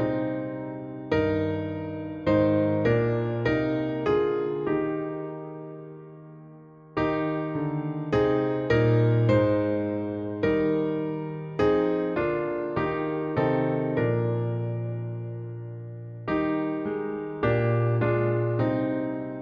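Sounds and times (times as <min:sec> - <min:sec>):
piano version of church music: 0:00.0 - 0:19.4.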